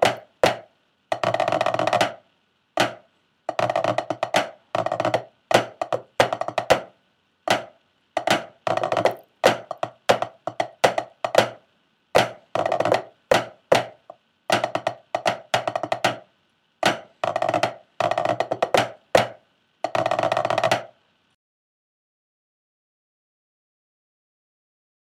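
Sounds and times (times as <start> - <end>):
tenor snare drum: 0.0 - 2.2, 2.8 - 6.9, 7.5 - 11.6, 12.2 - 16.2, 16.8 - 20.9.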